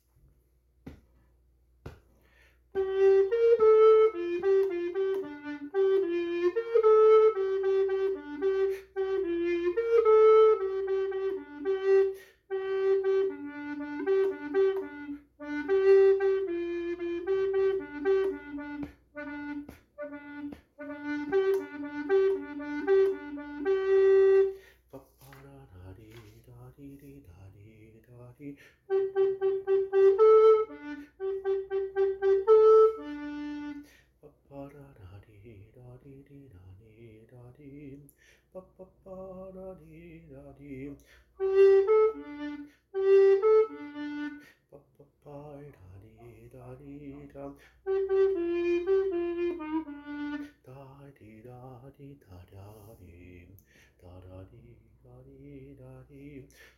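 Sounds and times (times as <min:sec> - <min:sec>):
recorder playing bass parts: 0:02.7 - 0:24.6, 0:28.9 - 0:33.9, 0:41.4 - 0:44.5, 0:47.8 - 0:50.6.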